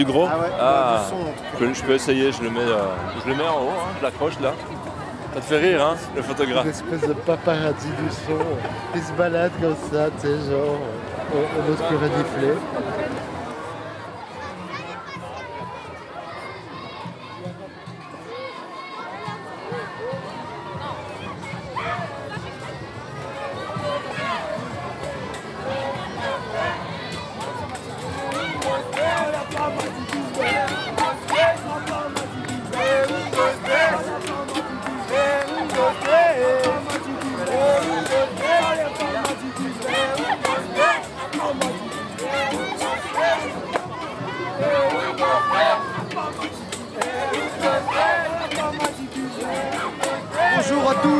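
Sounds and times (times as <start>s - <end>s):
speech: 0.0s - 13.0s
dense crowd hubbub at a festival parade: 0.0s - 51.1s
children's voices: 12.4s - 51.1s
people shouting at a festival parade: 25.6s - 51.1s.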